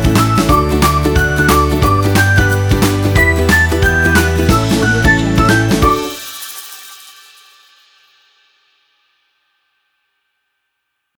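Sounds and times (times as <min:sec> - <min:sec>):
happy music: 0:00.0 - 0:06.8.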